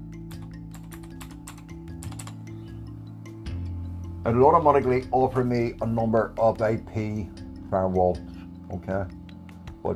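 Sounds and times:
typing on a computer keyboard: 0.3 - 2.4
speech: 4.2 - 9.2.

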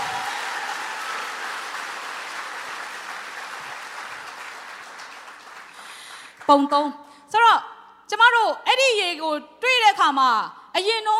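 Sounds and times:
audience applause offered in praise: 0.0 - 6.5
speech: 6.5 - 11.1.

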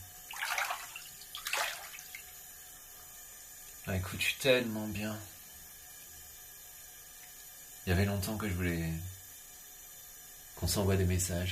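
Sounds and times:
bathwater splashing in a bathtub: 0.3 - 2.4
speech: 3.9 - 5.4, 7.9 - 9.1, 10.6 - 11.5.

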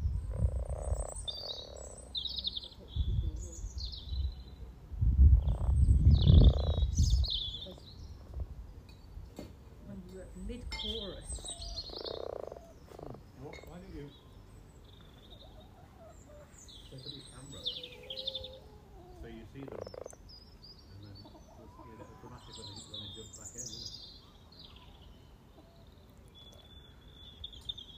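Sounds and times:
spring frog chorus croaking at a sunny pond in Formby: 0.1 - 2.9, 5.3 - 8.7, 10.8 - 16.4, 17.5 - 20.6.

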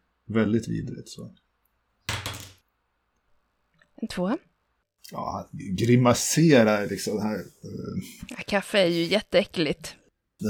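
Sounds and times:
speech: 0.3 - 1.5, 4.0 - 10.4
die clattering across a table: 2.1 - 2.6.

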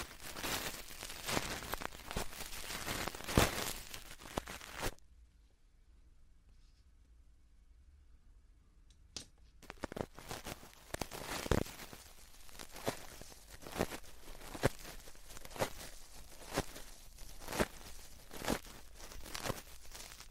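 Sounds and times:
brush rustling and scratching for ear cleaning: 0.0 - 5.0, 9.6 - 20.2.

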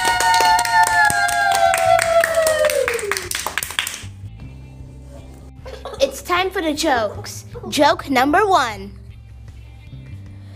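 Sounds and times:
students applauding: 0.0 - 4.1
laughter: 5.2 - 6.2
speech: 6.6 - 9.0.

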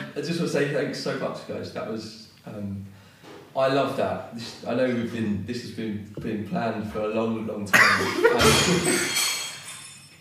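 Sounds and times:
speech: 0.2 - 3.0, 3.6 - 9.3
cutlery and plates dropped on floor: 8.1 - 10.2.

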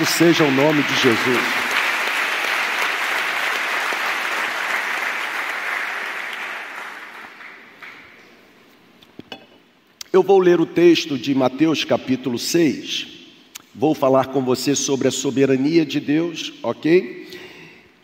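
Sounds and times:
speech: 0.0 - 1.7, 10.2 - 13.2, 13.8 - 17.4
audience applauding: 0.0 - 8.2.

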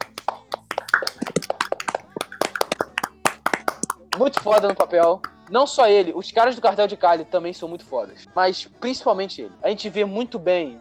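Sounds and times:
round of applause with brisk hand claps: 0.0 - 5.6
speech: 4.2 - 10.7.

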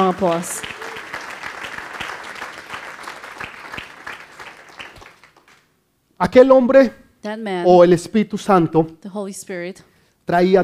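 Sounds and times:
audience applause: 0.0 - 5.7
speech: 0.1 - 0.8, 6.2 - 10.6.

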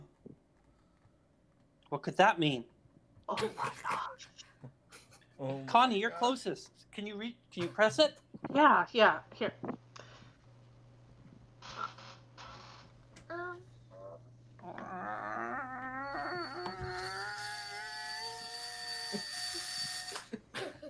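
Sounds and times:
speech: 1.9 - 2.7, 3.3 - 4.3, 5.4 - 9.8
motorized mechanism squeaking: 15.4 - 20.3.

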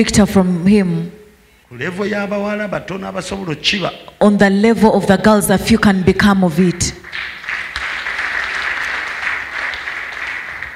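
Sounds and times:
speech: 0.0 - 7.0
audience clapping hands: 6.7 - 10.7.

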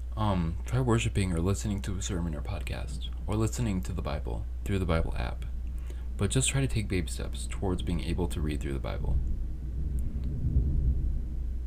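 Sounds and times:
speech: 0.4 - 5.6, 6.2 - 9.4
thunder rumbling: 7.0 - 11.6.

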